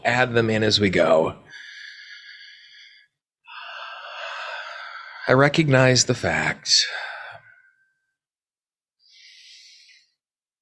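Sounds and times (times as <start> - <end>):
speech: 0.0 - 1.6, 5.3 - 7.1
deep breath during a guided tapping exercise: 1.4 - 5.3, 6.8 - 8.1, 9.0 - 10.2.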